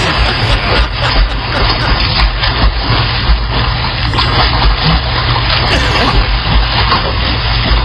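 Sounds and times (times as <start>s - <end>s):
laughter: 0.0s - 2.4s, 5.7s - 6.3s
golden retrievers swimming and splashing through water: 0.0s - 7.8s.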